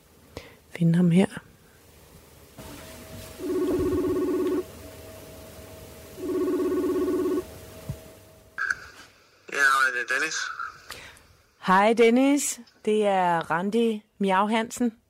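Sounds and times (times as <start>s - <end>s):
faint hum: 0.0s - 15.0s
speech: 0.8s - 1.5s, 11.7s - 15.0s
outgoing phone call ringing tone: 3.4s - 4.7s, 6.2s - 7.5s.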